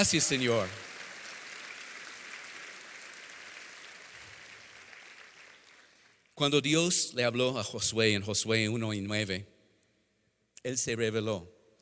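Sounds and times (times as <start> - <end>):
speech: 0.0 - 0.9, 6.4 - 9.6, 10.6 - 11.6
crowd applauding: 0.0 - 6.3.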